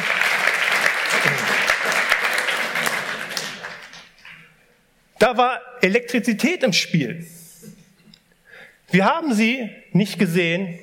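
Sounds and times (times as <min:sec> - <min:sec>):
audience applause: 0:00.0 - 0:04.4
speech: 0:05.2 - 0:07.4, 0:08.9 - 0:10.8.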